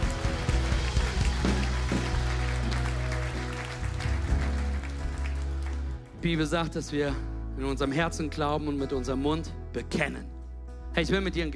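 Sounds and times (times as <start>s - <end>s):
audience applauding: 0.0s - 6.2s
speech: 6.2s - 10.3s, 10.9s - 11.5s.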